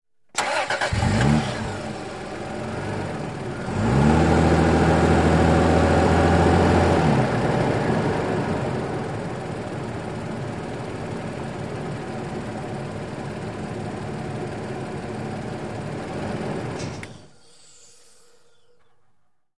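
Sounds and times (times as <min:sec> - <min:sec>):
SUV engine accelerating: 0:00.4 - 0:16.9.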